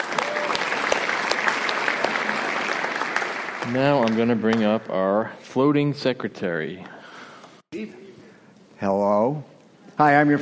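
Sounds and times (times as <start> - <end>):
crowd applauding: 0.0 - 4.9
speech: 3.7 - 7.0, 7.8 - 8.0, 8.8 - 10.3.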